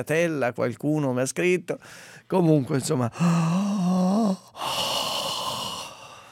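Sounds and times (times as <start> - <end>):
speech: 0.0 - 4.8
long airy open-mouthed breath: 1.8 - 2.3, 3.1 - 6.2
person making a voiced wavering groan: 3.1 - 6.2.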